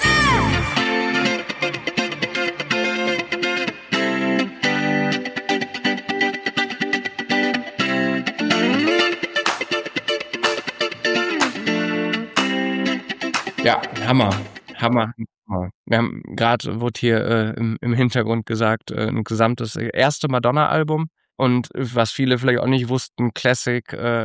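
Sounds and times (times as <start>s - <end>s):
electric guitar playing funk riff: 0.0s - 15.1s
speech: 13.7s - 24.2s.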